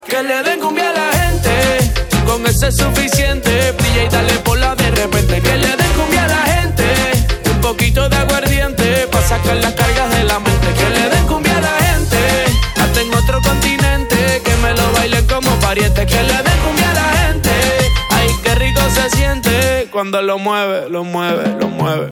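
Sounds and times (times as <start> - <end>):
cumbia music: 0.0 - 22.1.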